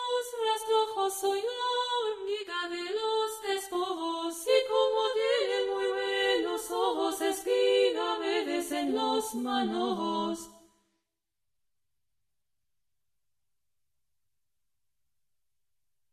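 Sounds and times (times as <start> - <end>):
four voices singing: 0.0 - 10.6.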